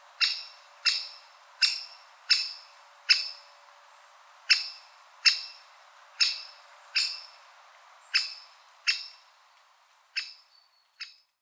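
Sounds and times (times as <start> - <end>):
great spotted woodpecker Dendrocopos major calling: 0.2 - 3.4, 4.5 - 5.6, 6.2 - 7.4, 8.1 - 9.2, 10.2 - 11.3.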